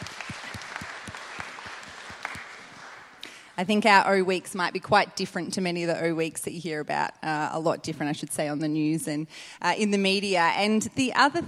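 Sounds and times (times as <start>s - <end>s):
audience clapping: 0.0s - 3.4s
speech: 3.6s - 11.4s.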